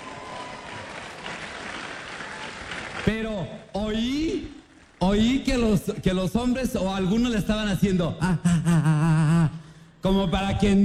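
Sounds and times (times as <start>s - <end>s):
applause: 0.0s - 3.5s
speech: 3.0s - 9.1s, 10.0s - 10.8s.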